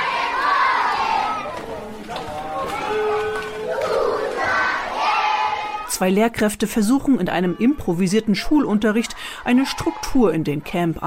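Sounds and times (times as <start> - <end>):
children shouting behind a refugee camp wall in Cameroon: 0.0 - 5.9, 9.5 - 10.3
speech: 6.0 - 11.0.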